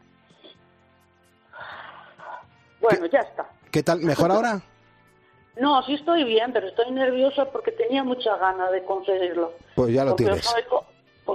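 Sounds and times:
deep breath drawn in during a breathing exercise: 0:01.5 - 0:02.5
speech: 0:02.9 - 0:04.7, 0:05.6 - 0:11.3.

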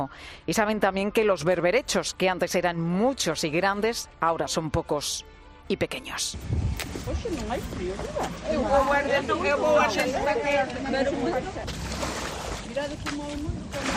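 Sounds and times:
speech: 0:00.0 - 0:12.1, 0:12.8 - 0:13.9
boat engine rumbling as a boat arrives at the Ría de Corme: 0:06.4 - 0:13.9
cockle gatherers chattering: 0:07.3 - 0:11.8.

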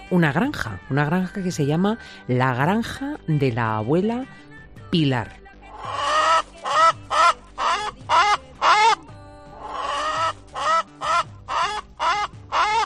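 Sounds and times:
speech: 0:00.1 - 0:06.0
hens clucking on a farm: 0:05.7 - 0:09.0, 0:09.6 - 0:12.8.

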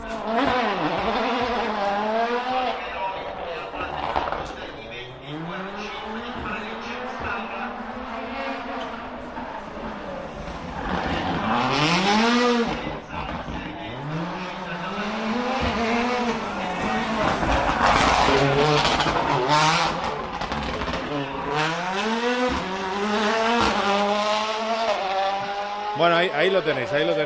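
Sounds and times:
rally car engine buzzing and revving on a race track: 0:00.0 - 0:27.2
speech: 0:26.4 - 0:27.2.

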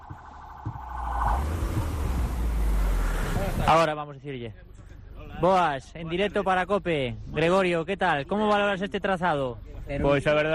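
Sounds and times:
Toyota Yaris rally course car passing: 0:00.0 - 0:03.9
speech: 0:03.7 - 0:04.7, 0:05.4 - 0:10.5.

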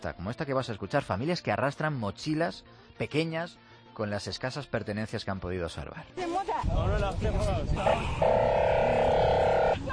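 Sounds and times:
speech: 0:00.0 - 0:09.1
police sirens: 0:07.8 - 0:09.8.

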